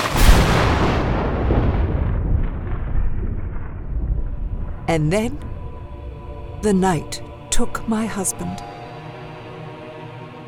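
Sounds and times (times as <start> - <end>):
thunder rolling over black water: 0.0 - 6.6
speech: 4.9 - 5.5, 6.6 - 8.7.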